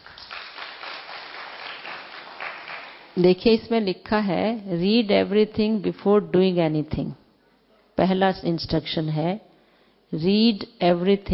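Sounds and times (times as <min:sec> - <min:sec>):
audience applause: 0:00.0 - 0:03.2
speech: 0:03.2 - 0:07.2, 0:08.0 - 0:09.5, 0:10.1 - 0:11.3.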